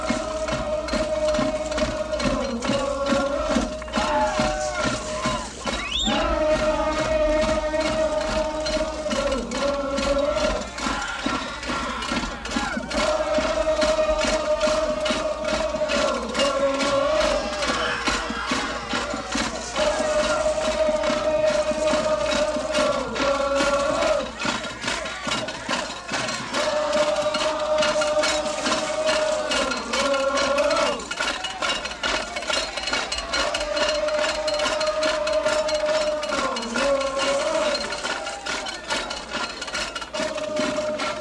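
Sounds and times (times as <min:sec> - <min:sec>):
audience noise: 0:00.0 - 0:41.1
crowd chanting: 0:00.0 - 0:41.1.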